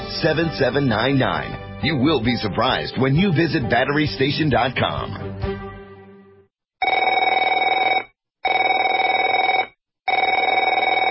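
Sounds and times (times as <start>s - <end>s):
speech: 0.2s - 5.5s
telephone ringing in rapid trilling bursts: 6.8s - 11.0s.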